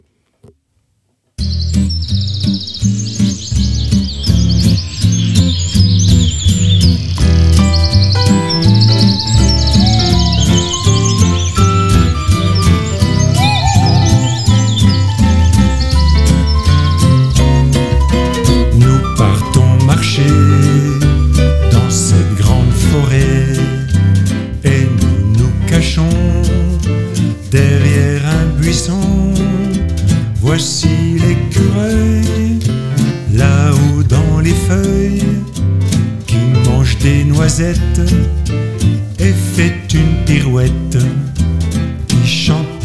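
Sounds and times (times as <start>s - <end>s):
bright high birdsong chirps and trills: 1.4s - 24.4s
steady musical backing with deep bass line and percussive beats: 1.4s - 42.8s.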